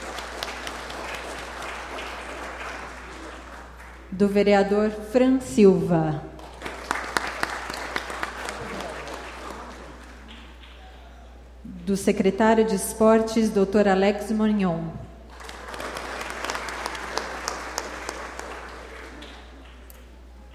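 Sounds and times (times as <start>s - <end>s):
audience applause: 0.0s - 4.1s, 6.4s - 10.7s, 15.3s - 19.9s
speech: 4.1s - 6.3s, 11.9s - 15.0s.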